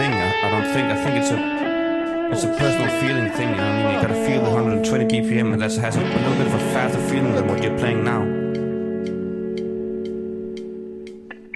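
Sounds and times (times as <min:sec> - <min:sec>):
metronome ticking: 0:00.0 - 0:11.5
speech: 0:01.2 - 0:01.6, 0:02.3 - 0:08.6.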